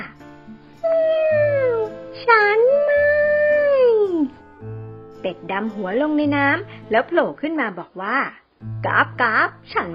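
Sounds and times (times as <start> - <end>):
voice imitating a cat meow: 0.8 - 2.0, 2.6 - 4.3
speech: 5.5 - 9.9.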